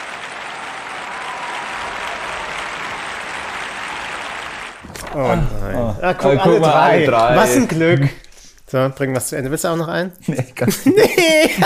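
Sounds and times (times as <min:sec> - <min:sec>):
inserted applause: 0:00.0 - 0:04.8
speech: 0:05.1 - 0:11.6
laughter: 0:10.3 - 0:11.6.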